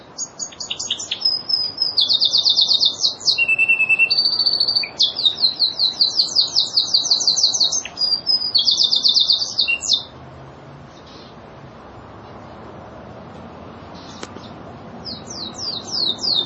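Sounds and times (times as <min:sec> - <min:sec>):
lizard canary trilling: 0:00.2 - 0:10.1, 0:14.0 - 0:16.4.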